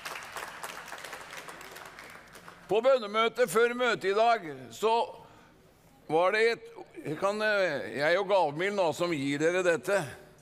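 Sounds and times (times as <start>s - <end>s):
audience applause: 0.0s - 2.7s
speech: 2.7s - 5.2s, 6.1s - 10.2s.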